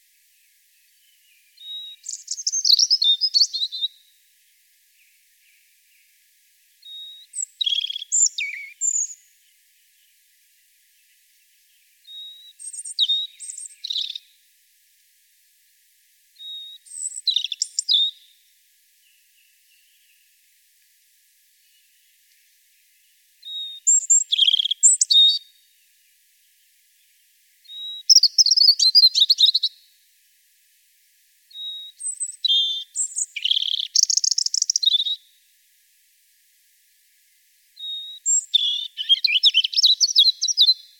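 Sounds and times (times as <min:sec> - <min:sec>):
European robin calling: 0:01.0 - 0:04.1, 0:06.8 - 0:09.3, 0:12.0 - 0:14.4, 0:16.4 - 0:18.3, 0:23.4 - 0:25.6, 0:27.6 - 0:29.8, 0:31.5 - 0:35.3, 0:37.8 - 0:40.9.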